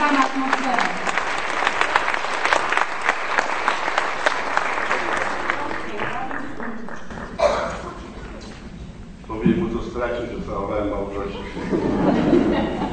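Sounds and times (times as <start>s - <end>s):
audience applause: 0.0s - 8.6s
crowd noise: 0.0s - 12.9s
speech: 0.1s - 0.8s
laughter: 11.2s - 12.9s.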